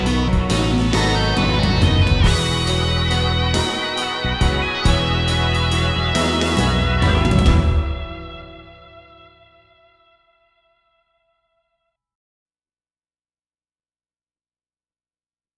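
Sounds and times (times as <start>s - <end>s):
piano: 0.0s - 9.7s
guitar: 0.0s - 10.3s.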